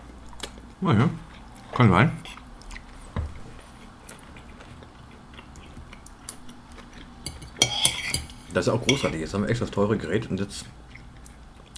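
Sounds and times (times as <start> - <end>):
quiet chewing during a meal: 0.0 - 8.0, 10.8 - 11.7
speech: 0.8 - 2.2, 8.6 - 10.8
cutlery clinking against dishes during a meal: 7.2 - 9.2.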